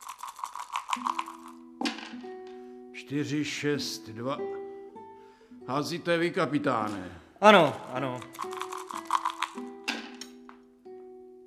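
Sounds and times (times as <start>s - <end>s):
dice rattling and clattering: 0.0s - 2.2s, 8.0s - 10.1s
speech: 1.0s - 1.2s, 3.0s - 4.6s, 5.7s - 8.6s.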